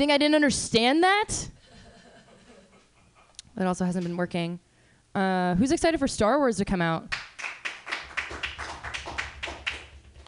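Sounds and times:
speech: 0.0 - 1.6, 3.6 - 4.6, 5.2 - 7.2
low hum: 0.0 - 10.2
audience applause: 7.4 - 10.2.

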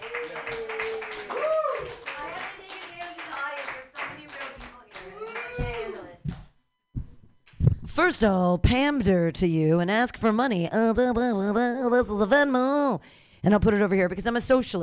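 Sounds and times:
audience clapping: 0.0 - 6.2
speech: 8.0 - 14.8.

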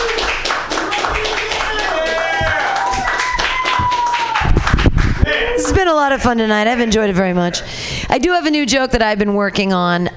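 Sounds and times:
audience clapping: 0.0 - 6.4
speech: 5.9 - 10.1.

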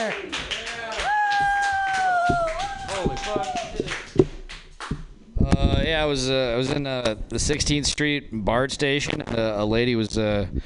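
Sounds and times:
audience applause: 0.0 - 4.2
speech: 6.0 - 10.6.

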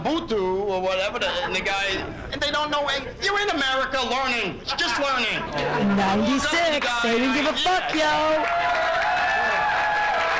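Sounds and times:
speech: 0.8 - 8.6
crowd clapping: 6.6 - 10.3
crowd booing: 7.4 - 10.3.

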